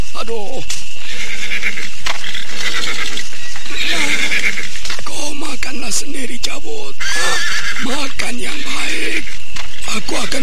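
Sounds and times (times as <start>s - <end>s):
speech: 0.2s - 9.3s
horse neighing: 1.0s - 4.7s, 7.0s - 7.9s.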